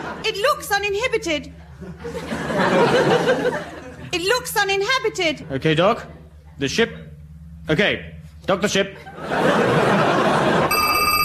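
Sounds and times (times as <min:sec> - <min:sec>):
laughter: 0:00.0 - 0:00.4, 0:01.6 - 0:04.3, 0:08.9 - 0:11.2
speech: 0:00.2 - 0:07.0, 0:07.7 - 0:10.1
alarm system bell ringing: 0:10.4 - 0:11.2.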